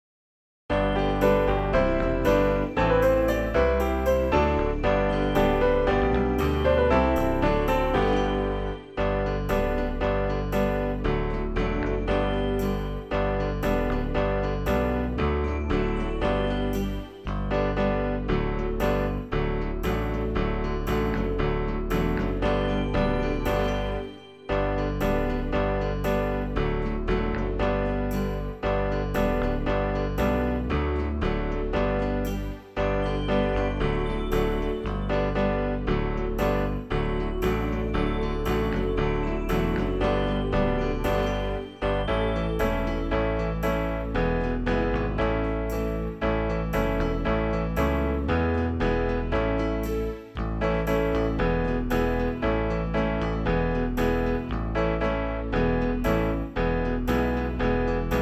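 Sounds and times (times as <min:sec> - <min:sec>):
backing music: 0:00.7 - 0:58.2.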